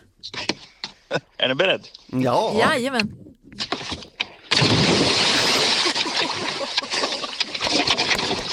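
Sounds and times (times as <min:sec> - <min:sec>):
speech: 0:00.2 - 0:00.5, 0:01.1 - 0:03.2
body cannonball splash into water from pier: 0:03.6 - 0:08.5.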